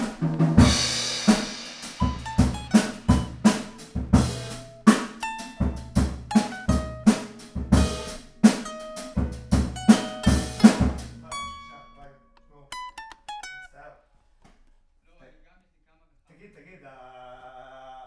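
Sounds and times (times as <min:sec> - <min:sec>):
guitar: 0:00.0 - 0:14.0.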